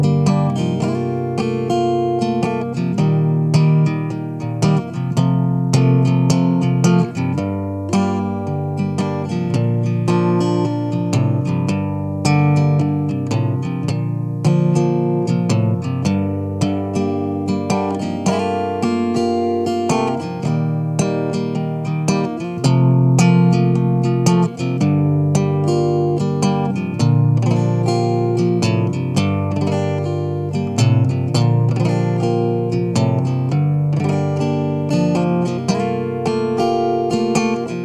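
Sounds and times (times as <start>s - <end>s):
acoustic song chords in G minor: 0.0s - 37.8s.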